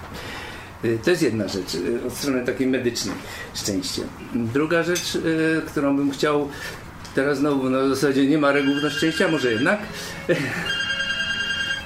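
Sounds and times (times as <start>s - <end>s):
speech: 0.8s - 10.8s
mobile phone ringing: 8.4s - 11.8s.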